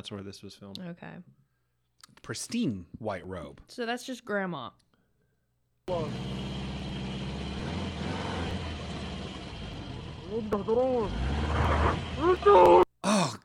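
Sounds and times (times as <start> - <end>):
speech: 0.0 - 1.4, 2.2 - 4.8, 5.9 - 6.4, 10.3 - 13.4
vehicle engine rumbling and revving: 5.9 - 12.8.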